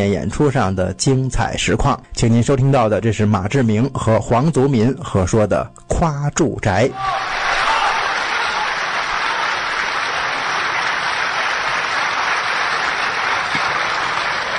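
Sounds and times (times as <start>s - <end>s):
speech: 0.0s - 7.4s
audience applause: 7.0s - 14.5s.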